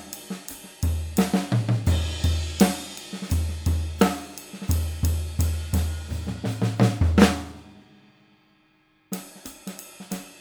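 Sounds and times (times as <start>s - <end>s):
65x14 Slingerland Radio King maple drum: 0.9s - 7.6s.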